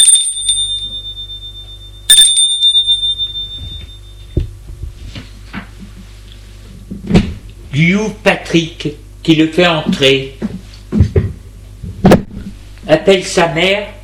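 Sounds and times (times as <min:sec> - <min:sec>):
electronic doorbell chimes: 0:00.0 - 0:04.3
speech: 0:07.8 - 0:10.4, 0:12.9 - 0:14.0.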